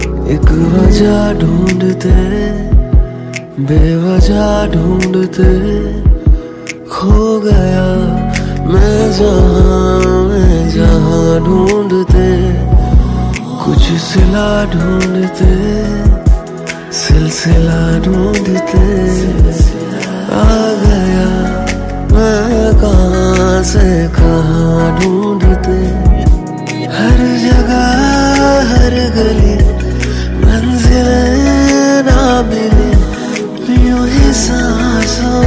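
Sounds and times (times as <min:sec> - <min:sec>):
Hindi romantic ringtone: 0:00.0 - 0:35.4.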